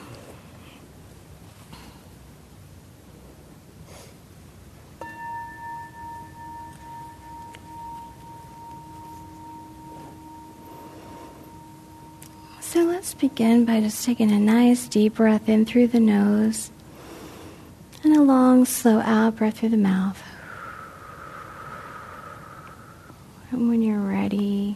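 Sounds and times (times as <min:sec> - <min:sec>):
noise: 0:00.0 - 0:24.7
meditation bell ringing: 0:05.0 - 0:16.8
speech: 0:12.8 - 0:16.8, 0:18.2 - 0:20.2.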